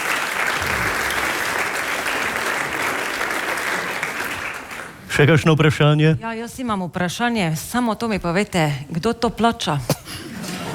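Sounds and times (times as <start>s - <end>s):
audience clapping: 0.0s - 5.4s
speech: 5.2s - 10.2s.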